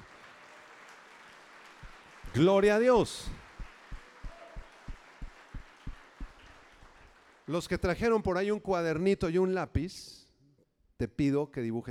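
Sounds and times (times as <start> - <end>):
crowd applauding: 0.0 - 7.8
speech: 2.3 - 3.4, 7.5 - 10.2, 11.0 - 11.8.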